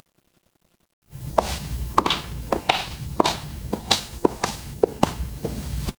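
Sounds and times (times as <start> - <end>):
footsteps in heels: 1.1 - 5.9.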